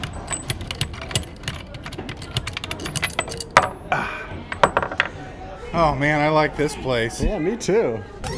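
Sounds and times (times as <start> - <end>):
bolt worked off at a nuts and bolts exhibit in a children's museum: 0.0 - 3.9
speech: 5.7 - 8.2.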